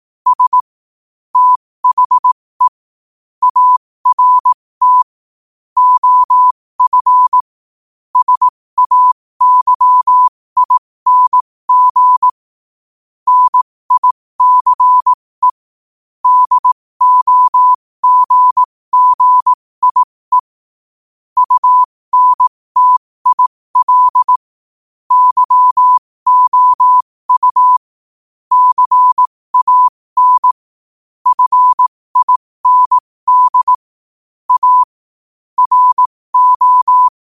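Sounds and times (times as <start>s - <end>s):
morse code at 5 wpm: 0.3s - 0.6s, 1.4s - 2.8s, 3.4s - 5.1s, 5.8s - 7.5s, 8.2s - 12.4s, 13.3s - 15.6s, 16.2s - 20.6s, 21.4s - 24.5s, 25.1s - 27.9s, 28.5s - 30.6s, 31.2s - 33.9s, 34.5s - 35.0s, 35.6s - 37.2s.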